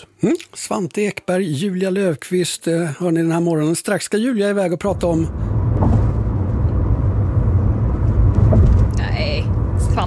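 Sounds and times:
speech: 0.2 - 5.6
car driving over bridge expansion joints: 4.8 - 10.0.

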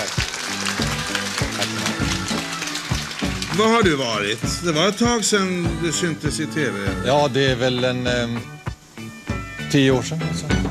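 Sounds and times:
crowd applause: 0.0 - 5.0
speech: 3.6 - 8.6, 9.7 - 10.6.

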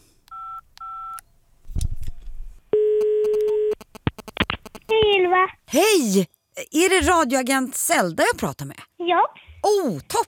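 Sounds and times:
telephone dialing tones: 0.3 - 1.2, 2.8 - 3.8
speech: 5.4 - 10.2.

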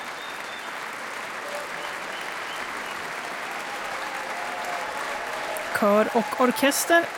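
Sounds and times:
concert hall audience applause in Berwaldhallen: 0.0 - 7.1
speech: 5.8 - 7.1.

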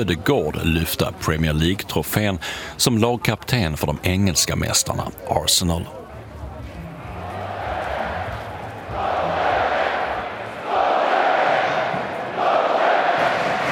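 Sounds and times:
speech: 0.0 - 6.0
Norwegian football supporters' section chanting in arena: 7.2 - 13.7.

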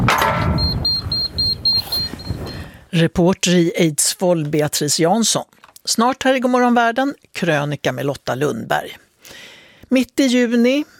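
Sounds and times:
electric door lock clunk: 0.0 - 0.8
electric door lock releasing beeps: 0.1 - 2.7
speech: 3.0 - 10.9.

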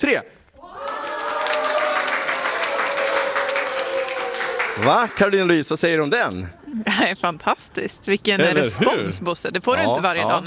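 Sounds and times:
speech: 0.0 - 0.4, 4.8 - 10.4
audience applause: 0.6 - 5.5.

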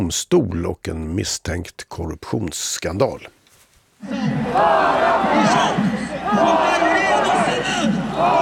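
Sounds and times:
speech: 0.1 - 3.4, 4.0 - 6.9
large crowd chanting a slogan in unison at a street demonstration: 4.0 - 8.4.

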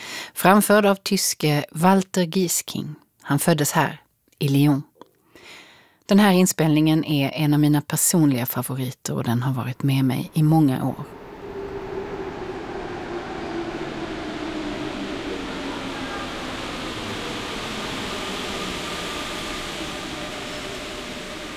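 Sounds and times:
speech: 0.4 - 11.2
faint steady whine of a subway train: 9.3 - 21.5
subway train wheels and carriage roaring in Lyon: 9.8 - 21.5.

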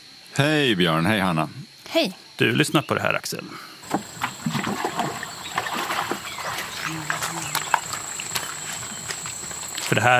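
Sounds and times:
speech: 0.3 - 4.1, 9.9 - 10.1
fisherman bailing water from a boat on the Mekong river: 3.8 - 10.1.

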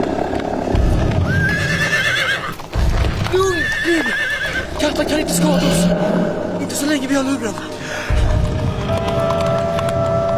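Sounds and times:
rumbling hoofbeats of horses ridden along a river: 0.0 - 10.3
horse whinnying: 1.1 - 6.6
speech: 5.0 - 7.8.

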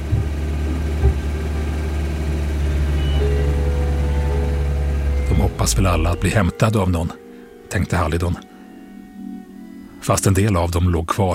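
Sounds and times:
approaching vehicle engine rumbling: 0.0 - 8.2
speech: 5.7 - 8.5, 10.0 - 11.3.

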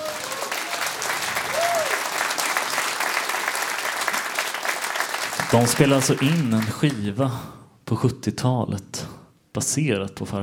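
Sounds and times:
audience applause: 0.0 - 7.2
speech: 5.5 - 10.4.

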